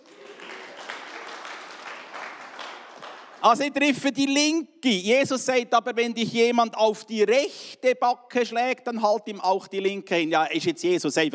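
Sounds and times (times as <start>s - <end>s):
audience applause: 0.0s - 3.6s
speech: 3.4s - 11.3s.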